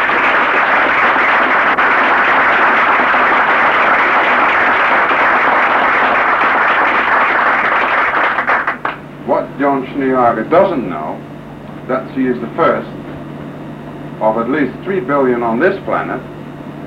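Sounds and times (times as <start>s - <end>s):
audience applause: 0.0s - 9.0s
speech: 9.6s - 11.1s, 11.9s - 13.0s, 14.2s - 16.4s.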